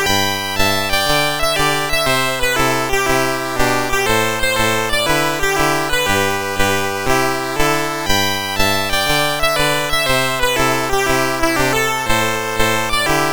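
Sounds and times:
chiptune music on MOS6581R4 sound chip: 0.0 - 13.3.

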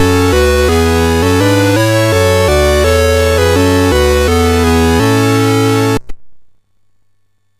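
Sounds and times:
MOS6581R4 SID chip music: 0.0 - 6.0.

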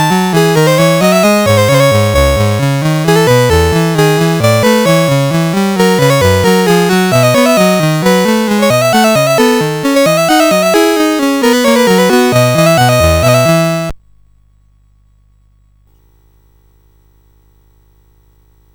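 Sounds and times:
polonaise on a sound chip: 0.0 - 13.9.

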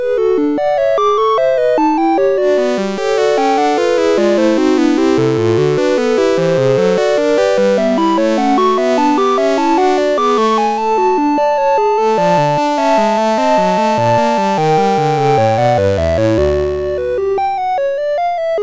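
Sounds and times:
gigue on MOS6581 SID chip: 0.1 - 10.8, 11.4 - 18.5.

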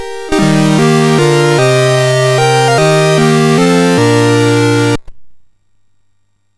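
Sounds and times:
MOS6581R4 SID chip music: 0.0 - 5.0.

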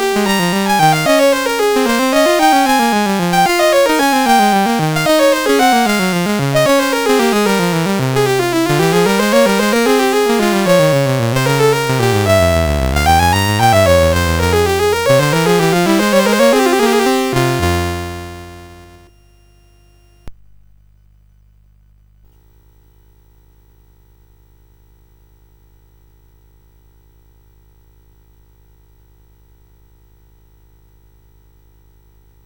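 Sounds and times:
music on a CSG8580R5 chip: 0.0 - 19.1.

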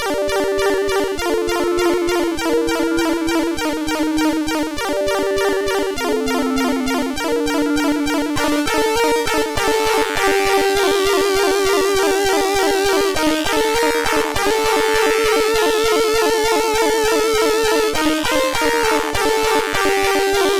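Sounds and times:
MOS SID CSG8580R5 chiptune music: 0.1 - 20.5.

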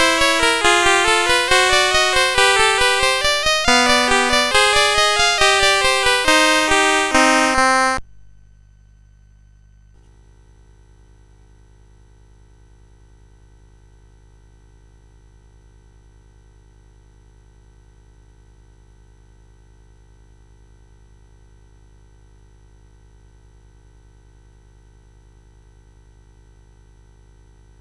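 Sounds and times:
chiptune canon on a CSG8580R5 sound chip: 0.0 - 8.0.

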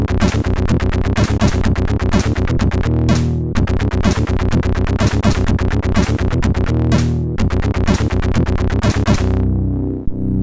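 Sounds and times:
death metal music on a MOS6581R4 sound chip: 0.0 - 10.3.

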